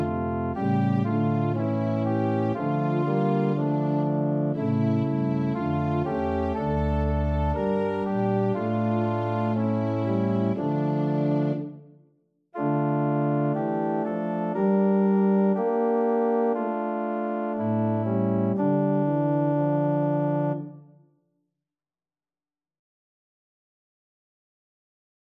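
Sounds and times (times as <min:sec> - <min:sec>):
organ playing hymn: 0:00.0 - 0:11.7, 0:12.6 - 0:20.7.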